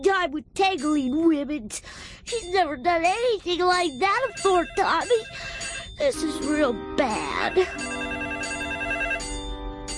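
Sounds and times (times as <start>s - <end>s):
speech: 0.2s - 7.9s
telephone ringing: 4.0s - 6.1s, 7.3s - 9.9s.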